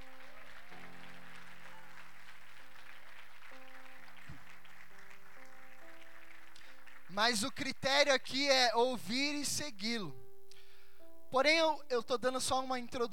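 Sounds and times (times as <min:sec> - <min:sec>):
audience applause: 0:00.0 - 0:08.2
speech: 0:07.2 - 0:10.2, 0:11.3 - 0:13.1.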